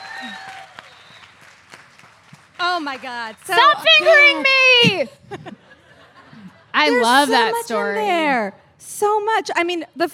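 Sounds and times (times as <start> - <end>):
live audience applause: 0.0 - 4.3
speech: 2.6 - 5.6, 6.8 - 10.1.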